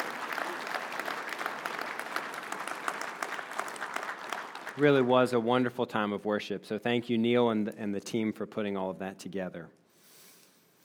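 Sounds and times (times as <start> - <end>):
audience applause: 0.0 - 5.1
speech: 4.8 - 9.8.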